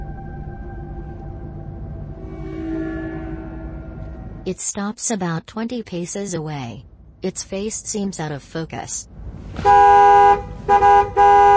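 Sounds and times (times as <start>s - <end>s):
speech: 4.5s - 10.4s
car horn honking: 9.6s - 11.5s.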